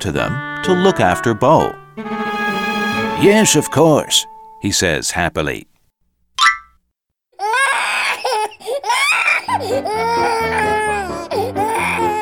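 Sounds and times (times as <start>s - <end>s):
speech: 0.0s - 2.2s, 3.2s - 5.7s, 9.6s - 10.8s
steady low rhythmic pulse: 2.0s - 4.6s
baby howling and crying: 7.4s - 12.1s.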